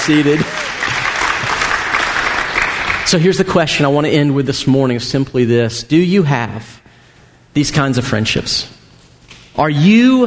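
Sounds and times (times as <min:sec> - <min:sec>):
speech: 0:00.0 - 0:00.7, 0:03.1 - 0:06.8, 0:07.6 - 0:08.8, 0:09.6 - 0:10.2
audience applause: 0:00.0 - 0:03.2.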